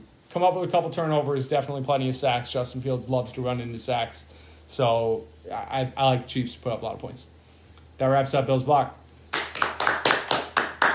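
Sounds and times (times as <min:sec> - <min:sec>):
speech: 0:00.4 - 0:07.3, 0:08.0 - 0:09.0
hand claps: 0:09.3 - 0:10.9.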